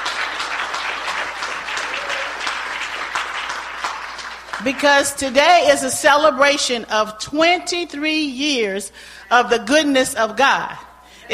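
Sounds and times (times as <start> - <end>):
hand clapping: 0.0 - 4.9
speech: 4.6 - 11.3.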